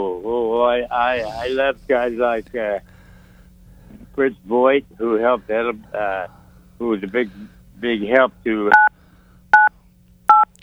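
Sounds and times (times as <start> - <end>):
speech: 0.0 - 2.9, 4.2 - 8.8
faint low hum: 0.0 - 10.6
telephone keypad buttons being pressed: 10.3 - 10.5.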